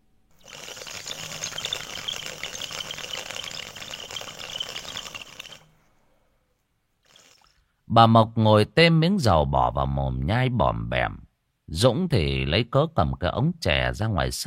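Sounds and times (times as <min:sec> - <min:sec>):
bamboo water pipe bubbling while smoking: 0:00.3 - 0:05.7, 0:07.0 - 0:07.5
speech: 0:07.9 - 0:14.4.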